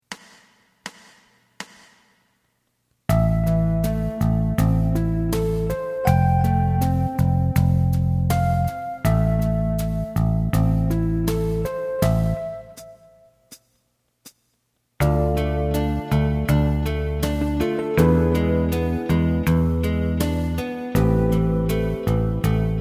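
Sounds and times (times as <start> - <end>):
lead melody: 3.1 - 13.1, 15.0 - 22.7.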